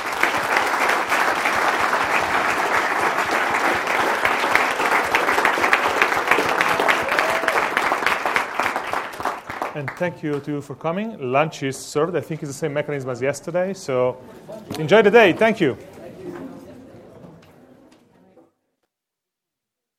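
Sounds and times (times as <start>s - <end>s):
audience applause: 0.0s - 10.4s
speech: 9.8s - 15.9s.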